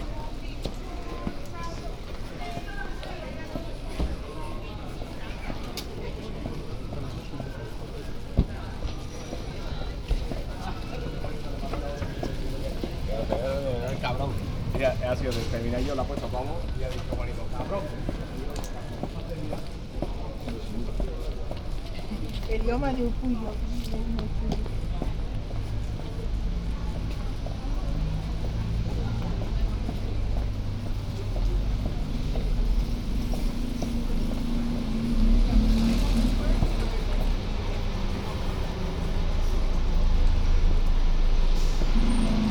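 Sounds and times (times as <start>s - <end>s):
people talking on Mansfield Road, Holywell Street and Broad Street: 0.0s - 40.8s
footsteps: 0.0s - 42.5s
low rumble of traffic: 0.0s - 42.5s
vehicle passing: 12.6s - 18.5s, 25.4s - 42.5s.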